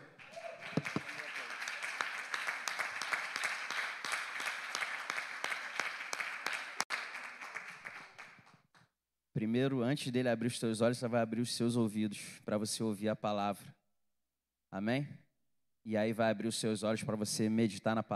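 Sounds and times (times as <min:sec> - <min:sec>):
audience applause: 0:00.0 - 0:08.4
speech: 0:09.4 - 0:13.8, 0:14.7 - 0:15.2, 0:15.8 - 0:18.1.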